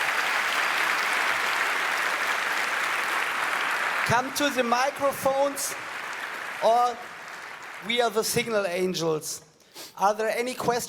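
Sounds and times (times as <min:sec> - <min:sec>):
audience applause: 0:00.0 - 0:08.6
speech: 0:04.1 - 0:06.0, 0:06.6 - 0:07.1, 0:07.8 - 0:10.8.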